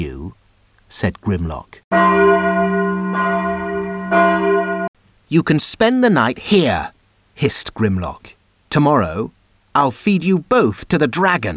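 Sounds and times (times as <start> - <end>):
speech: 0.9 - 2.6, 5.3 - 11.5
crystal bell ringing: 1.9 - 4.9.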